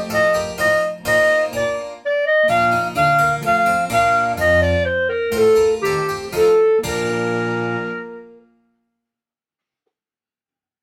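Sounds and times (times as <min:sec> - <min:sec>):
carnival clarinet music: 0:00.0 - 0:08.6.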